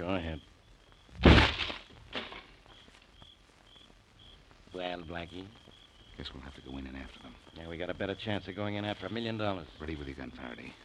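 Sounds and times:
speech: 0.0 - 0.6, 4.8 - 10.8
door being kicked open: 1.2 - 2.5.

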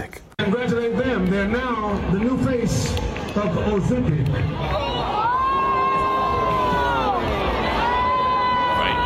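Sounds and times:
speech: 0.4 - 5.0
crowd of fans jeering at a game: 4.4 - 9.0.

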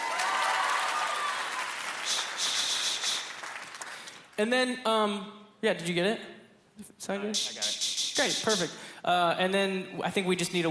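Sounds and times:
audience clapping: 0.0 - 4.4
speech: 4.4 - 10.6.

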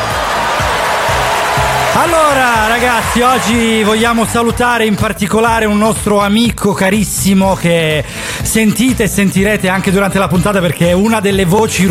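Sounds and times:
applause: 0.0 - 4.6
speech: 2.0 - 11.8.

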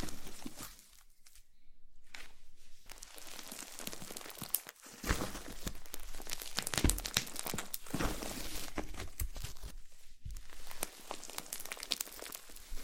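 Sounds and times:
slime being squished and stretched with crackling pops: 2.8 - 12.8.

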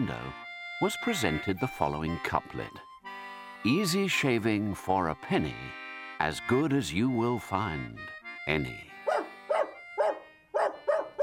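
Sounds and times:
speech: 0.0 - 2.9, 3.6 - 8.9
dog barking: 9.0 - 11.2.

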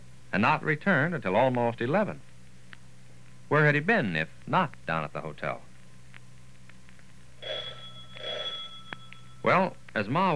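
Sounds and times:
speech: 0.3 - 2.3, 3.5 - 5.7, 9.4 - 10.3
doorbell ringing: 7.4 - 9.6.

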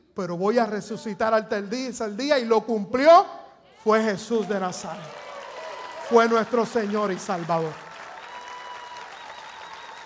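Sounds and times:
speech: 0.2 - 5.2, 6.1 - 7.8
audience applauding: 4.3 - 10.0.

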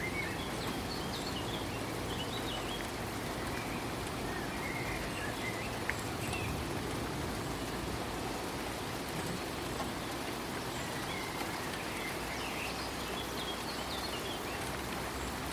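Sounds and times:
rain falling steadily: 0.0 - 15.5.

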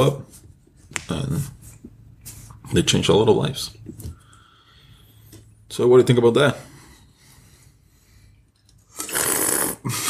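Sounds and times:
speech: 0.0 - 0.3, 2.7 - 4.0, 5.7 - 6.7, 9.8 - 10.0
person slurping a drink: 8.9 - 10.0.

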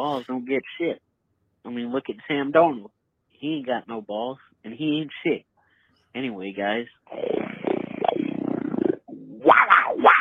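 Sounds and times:
speech: 0.0 - 5.5, 6.1 - 7.4
person imitating an animal bellow then growl: 7.0 - 10.2.

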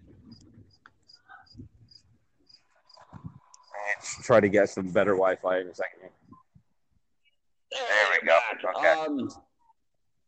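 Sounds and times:
cricket chirping: 0.0 - 4.0
speech: 4.2 - 6.2, 8.6 - 9.4.

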